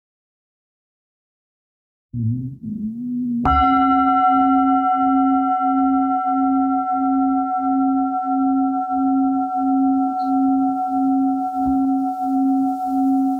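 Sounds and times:
soft low sound: 0:02.2 - 0:13.3
meditation bell ringing: 0:03.5 - 0:13.3.

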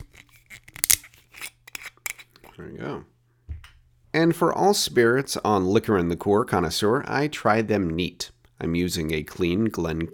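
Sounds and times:
metal screw cap being twisted off a bottle: 0:00.0 - 0:02.4
speech: 0:02.6 - 0:03.1, 0:04.2 - 0:10.1.

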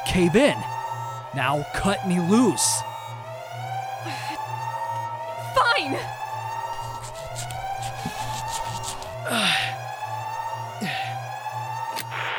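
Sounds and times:
electronic alarms blaring: 0:00.0 - 0:12.3
speech: 0:00.1 - 0:00.7, 0:01.3 - 0:02.9, 0:09.3 - 0:09.7.

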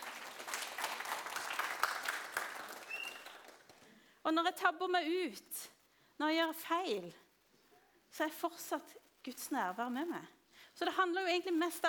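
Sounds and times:
audience applause: 0:00.0 - 0:03.8
speech: 0:04.3 - 0:07.2, 0:08.1 - 0:11.8.

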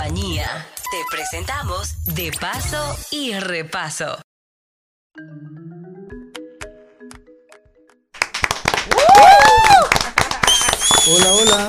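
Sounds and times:
speech: 0:00.1 - 0:04.2, 0:05.2 - 0:05.9, 0:11.1 - 0:11.6
applause for a guest: 0:08.2 - 0:11.6.

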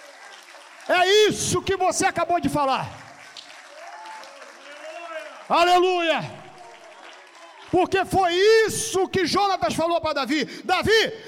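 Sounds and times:
audience applause: 0:00.0 - 0:08.4
speech: 0:00.9 - 0:03.0, 0:05.5 - 0:06.4, 0:07.7 - 0:11.2.

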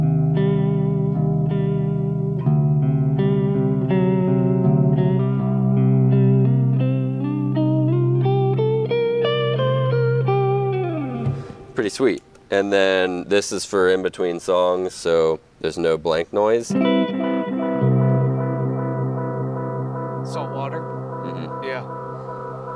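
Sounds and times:
electric guitar playing sustained notes through a vibrato pedal: 0:00.0 - 0:11.8, 0:16.7 - 0:22.7
speech: 0:11.8 - 0:17.2.

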